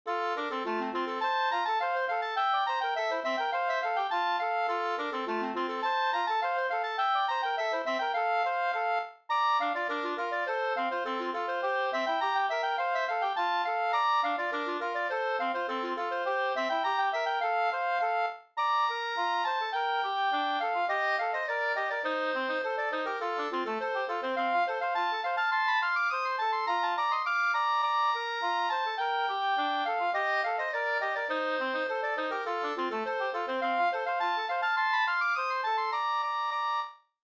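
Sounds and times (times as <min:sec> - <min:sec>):
polka music: 0:00.1 - 0:36.9.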